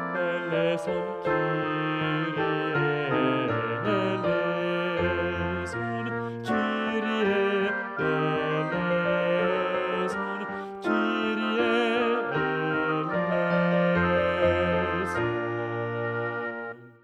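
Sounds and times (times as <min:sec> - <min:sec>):
bass voice singing a liturgical chant: 0:00.1 - 0:17.0.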